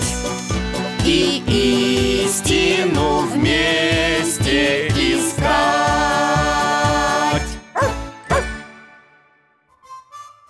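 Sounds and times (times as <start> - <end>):
rhythmic tonal music: 0.0 - 8.7
speech: 1.0 - 5.8
pet dog barking a greeting: 7.8 - 8.5.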